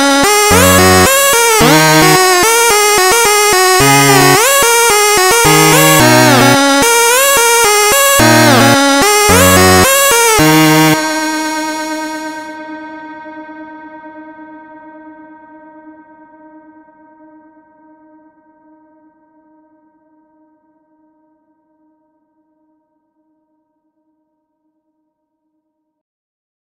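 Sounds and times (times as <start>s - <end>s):
slowed instrumental music: 0.0s - 13.6s.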